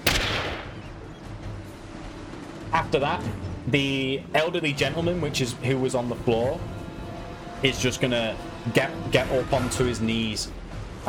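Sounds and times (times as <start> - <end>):
Scottfield revolver gunshot sound effect: 0.0 - 0.9
speech: 2.8 - 6.8, 7.6 - 11.0.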